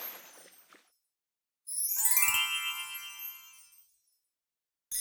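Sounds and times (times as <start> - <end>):
base game sound: 2.0 - 3.6.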